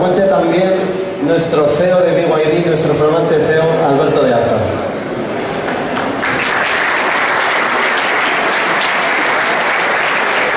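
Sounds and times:
speech: 0:00.0 - 0:05.0
large audience applause: 0:05.4 - 0:10.5.

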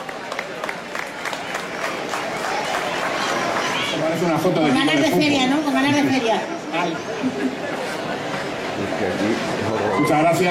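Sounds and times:
audience applause: 0:00.0 - 0:04.5
speech: 0:04.1 - 0:07.8, 0:08.8 - 0:10.4.

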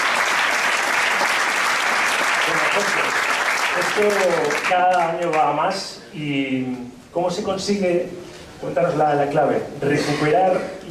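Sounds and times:
audience applause: 0:00.0 - 0:05.4
speech: 0:03.8 - 0:10.8.

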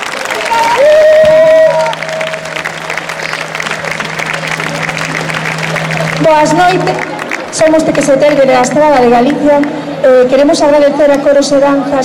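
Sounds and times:
crowd applause: 0:00.0 - 0:10.0
short shrill whistle: 0:00.4 - 0:02.5
low hum: 0:00.6 - 0:10.8
speech: 0:06.2 - 0:12.0.

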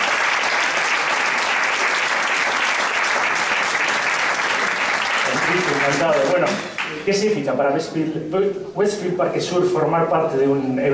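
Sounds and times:
audience applause: 0:00.0 - 0:07.1
speech: 0:05.8 - 0:10.9.

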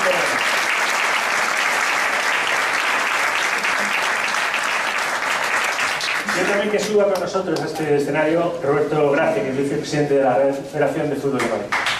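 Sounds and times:
loud audience applause: 0:00.0 - 0:07.2, 0:11.7 - 0:11.9
speech: 0:06.6 - 0:11.8.

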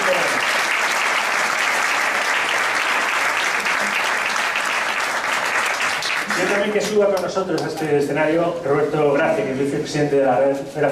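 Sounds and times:
audience applause: 0:00.0 - 0:07.3
speech: 0:06.8 - 0:10.9.

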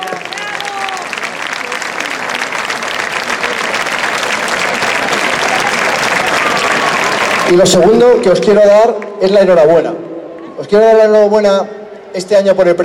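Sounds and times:
audience applause: 0:00.0 - 0:07.9
speech: 0:07.5 - 0:10.0, 0:10.6 - 0:12.8.

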